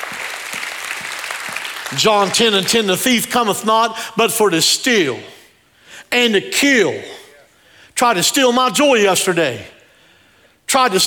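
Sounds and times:
audience hand clapping: 0.0 - 3.0
speech: 1.9 - 5.4, 6.1 - 7.2, 8.0 - 9.8, 10.7 - 11.0.

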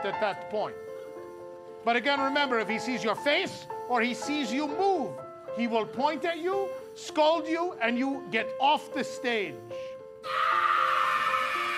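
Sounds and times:
speech: 0.0 - 0.9, 1.8 - 10.5
high-pitched scream sound effect: 10.2 - 11.7.

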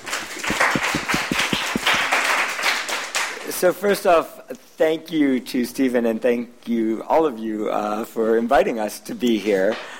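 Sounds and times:
audience applause: 0.0 - 3.4
speech: 3.6 - 9.9.

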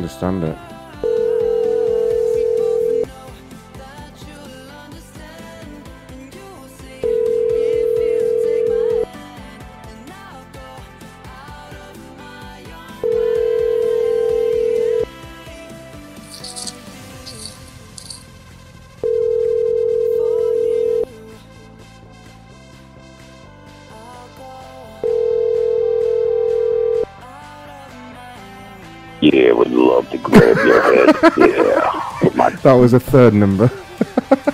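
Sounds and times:
speech: 0.0 - 0.7, 32.6 - 34.3
voicemail tones on a phone line: 1.0 - 3.1, 7.0 - 9.1, 13.0 - 15.1, 19.0 - 21.1, 25.0 - 27.1
laughter: 30.2 - 32.8, 33.6 - 34.5.

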